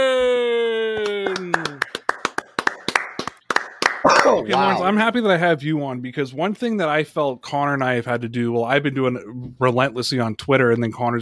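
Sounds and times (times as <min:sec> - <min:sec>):
hand clapping: 0:00.9 - 0:04.8
speech: 0:04.4 - 0:11.2.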